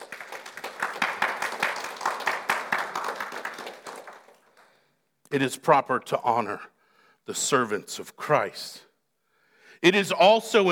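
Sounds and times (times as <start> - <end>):
crowd applause: 0.0 - 4.8
speech: 5.3 - 8.9, 9.8 - 10.7.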